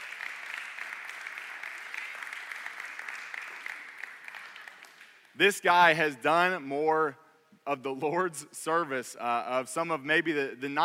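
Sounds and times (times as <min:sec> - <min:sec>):
crowd applauding: 0:00.0 - 0:05.4
speech: 0:05.4 - 0:10.8.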